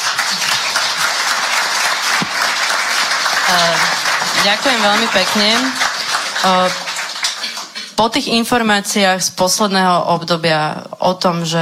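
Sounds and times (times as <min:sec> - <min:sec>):
audience applause: 0:00.0 - 0:08.0
speech: 0:03.5 - 0:05.8, 0:06.4 - 0:06.8, 0:08.0 - 0:11.6.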